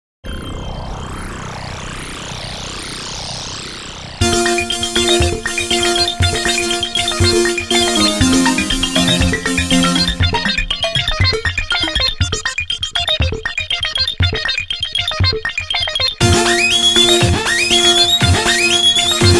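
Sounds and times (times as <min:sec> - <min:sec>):
electronic squeak: 0:04.2 - 0:19.3.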